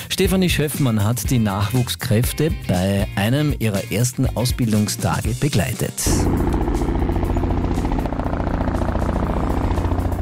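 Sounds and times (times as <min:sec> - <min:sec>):
speech: 0:00.2 - 0:07.0
large helicopter engine: 0:06.0 - 0:10.2.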